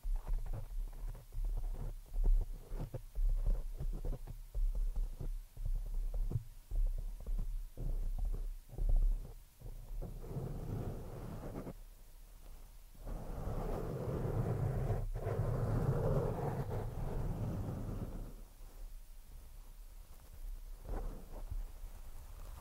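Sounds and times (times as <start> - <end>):
scratching right on the microphone: 0.0 - 11.8, 13.0 - 18.9, 20.0 - 22.6.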